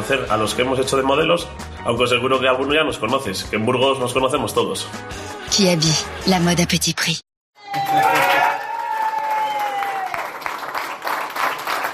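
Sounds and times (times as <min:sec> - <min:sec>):
speech: 0:00.1 - 0:07.3, 0:07.9 - 0:08.4
applause at Partido Popular headquarters: 0:07.7 - 0:11.9.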